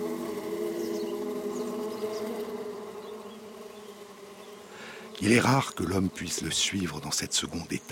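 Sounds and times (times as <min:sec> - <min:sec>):
swarm of honeybees buzzing in flight: 0:00.0 - 0:07.8
speech: 0:05.2 - 0:07.8.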